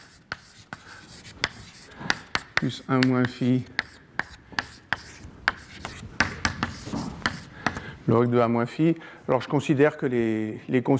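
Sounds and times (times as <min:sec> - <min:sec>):
chalk tapping on a board while an equation is written: 0:00.0 - 0:07.8
speech: 0:02.6 - 0:03.8, 0:08.1 - 0:10.9.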